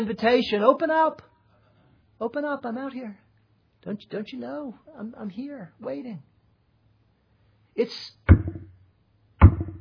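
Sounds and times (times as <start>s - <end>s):
speech: 0.0s - 1.3s, 2.2s - 3.2s, 3.8s - 6.3s, 7.8s - 8.4s
knocking on a door: 8.3s - 8.7s, 9.4s - 9.7s.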